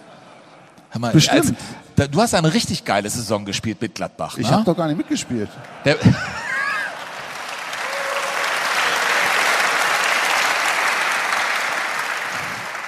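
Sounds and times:
speech: 0.9 - 6.4
laughter: 4.4 - 7.5
audience applause: 6.0 - 12.8.

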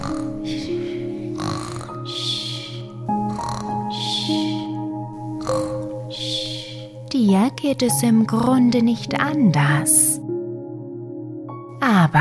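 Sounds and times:
soft rhythmic snoring: 0.0 - 4.7, 5.4 - 6.9
low sustained tonal drone: 0.0 - 11.5
speech: 7.6 - 10.1.

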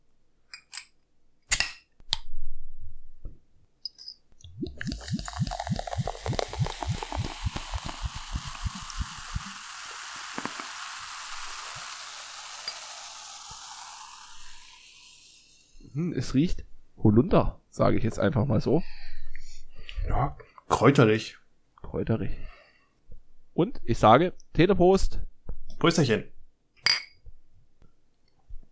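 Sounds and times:
glass bottle opening with clicks and a pop: 3.9 - 9.6, 10.2 - 13.6, 26.8 - 27.2
carbonated drink fizzing: 4.6 - 15.8
speech: 16.2 - 19.0, 20.2 - 21.4, 22.0 - 22.5, 23.6 - 26.3.

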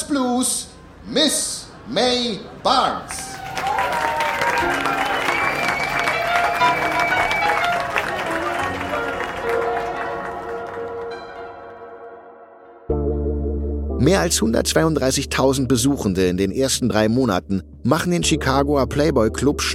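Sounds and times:
speech: 0.1 - 3.2, 14.0 - 19.7
audience applause: 3.1 - 11.7.

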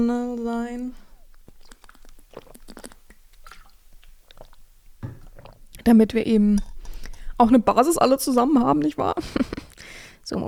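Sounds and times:
speech: 0.0 - 1.0, 5.8 - 6.7, 7.4 - 9.6, 10.3 - 10.4
person gulping and swallowing while drinking: 1.2 - 5.9.

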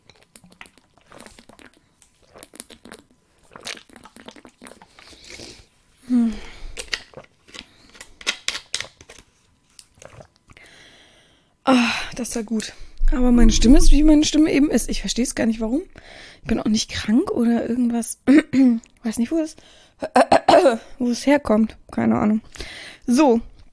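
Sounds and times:
person drinking still water: 0.0 - 5.7, 6.4 - 8.1, 9.8 - 10.7
speech: 12.2 - 23.5.

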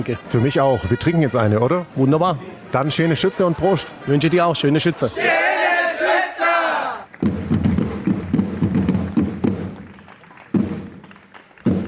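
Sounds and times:
speech: 0.0 - 5.4
school drummers marching in at a beer garden: 6.3 - 11.8.

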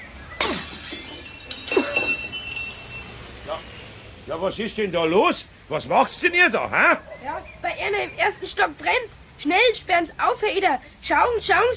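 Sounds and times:
workshop window glass shattering from a thrown paving stone: 0.4 - 3.4
glass shards tinkling: 0.4 - 3.7
speech: 4.3 - 11.7.

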